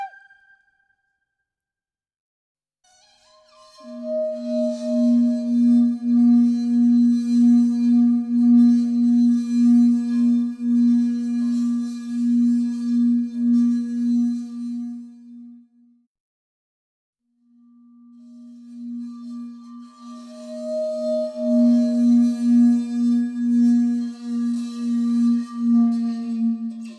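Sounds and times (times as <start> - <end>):
didgeridoo: 3.8 - 15.4, 18.2 - 26.9.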